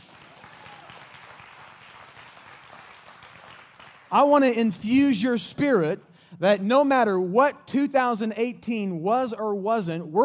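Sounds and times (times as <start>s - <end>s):
audience clapping: 0.0s - 4.5s
speech: 4.1s - 10.2s.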